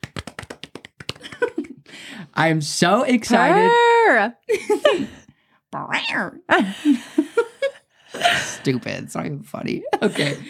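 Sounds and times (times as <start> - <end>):
one or two people clapping: 0.0 - 1.7
speech: 2.4 - 7.1, 8.4 - 10.4.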